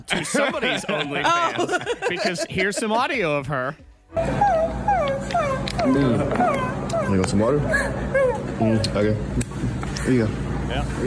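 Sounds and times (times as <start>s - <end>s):
laughter: 0.0s - 3.4s
speech: 0.0s - 4.5s, 5.8s - 11.0s
small dog whimpering and yipping: 4.2s - 8.8s.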